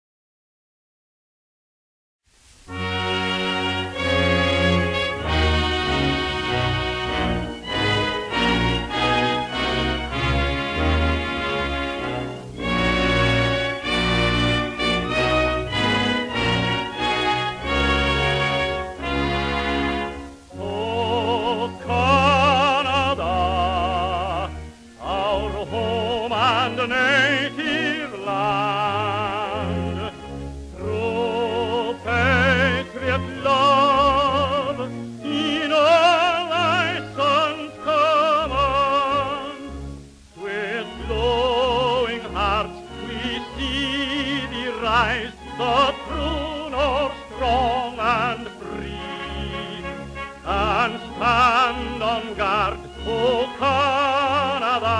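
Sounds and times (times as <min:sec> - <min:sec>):
anthem English version: 0:02.7 - 0:54.9.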